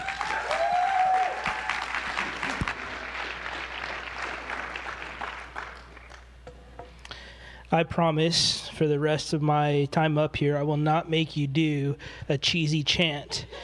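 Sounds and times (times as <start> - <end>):
church congregation applause welcoming a pastor: 0.0 - 6.3
speech: 7.7 - 13.6.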